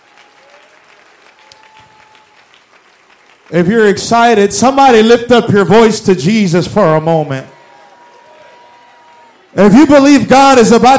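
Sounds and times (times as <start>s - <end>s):
audience clapping hands: 0.0s - 5.2s, 7.3s - 10.9s
speech: 3.5s - 7.5s, 9.6s - 10.9s.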